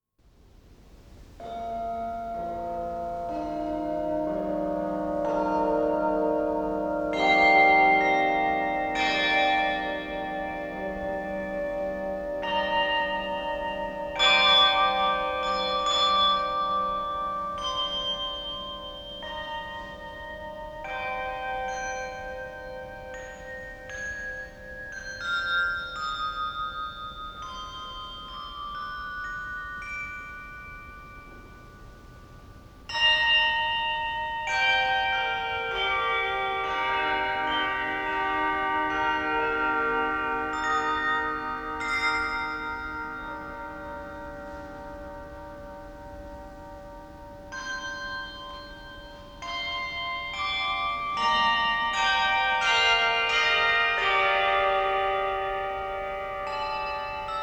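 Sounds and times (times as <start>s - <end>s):
suite for bells: 0.3s - 57.4s.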